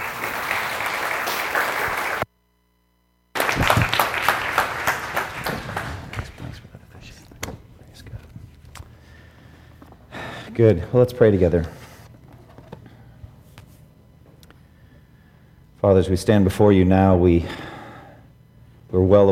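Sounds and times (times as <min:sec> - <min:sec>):
church congregation applauding a preacher: 0:00.0 - 0:02.3, 0:03.4 - 0:06.7
speech: 0:10.6 - 0:11.8, 0:15.8 - 0:17.7, 0:19.0 - 0:19.2.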